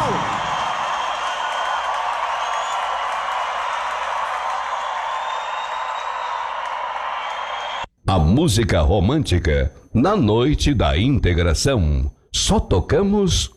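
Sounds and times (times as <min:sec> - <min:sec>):
audience applause: 0:00.0 - 0:07.9
speech: 0:08.2 - 0:13.5.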